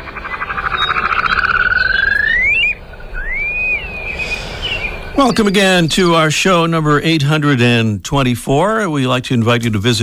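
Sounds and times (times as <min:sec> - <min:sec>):
upland sandpiper calling with bubbling trill and whistles: 0:00.0 - 0:06.2
speech: 0:05.2 - 0:10.0.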